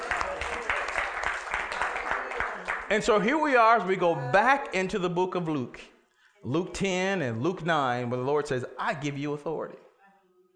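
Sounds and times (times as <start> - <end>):
audience clapping hands: 0.0 - 3.8
speech: 2.9 - 9.8.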